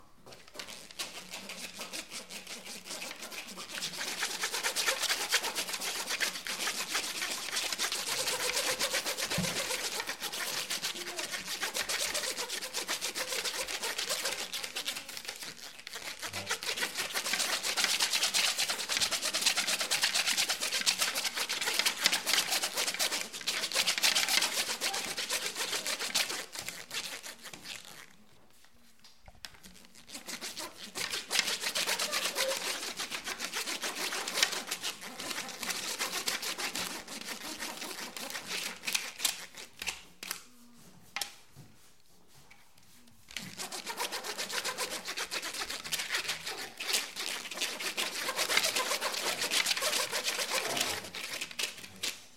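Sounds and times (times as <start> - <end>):
improvisation on corrugated cardboard: 0.0 - 52.3.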